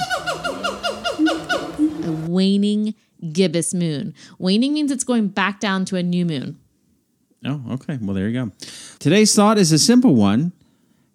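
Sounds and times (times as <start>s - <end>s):
person imitating a gibbon call: 0.0s - 2.3s
speech: 2.3s - 6.6s, 7.4s - 10.6s.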